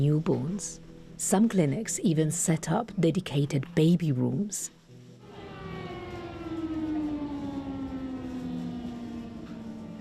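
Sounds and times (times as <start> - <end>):
speech: 0.0 - 4.8
air raid siren wailing: 5.2 - 9.9.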